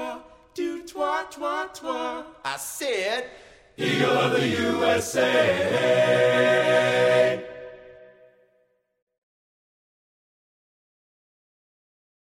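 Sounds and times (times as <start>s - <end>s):
a cappella singing: 0.0s - 2.9s, 3.8s - 8.3s.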